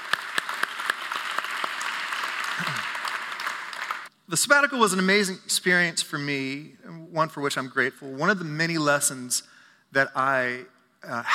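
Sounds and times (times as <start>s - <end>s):
audience applause: 0.0s - 4.1s
speech: 4.3s - 11.3s.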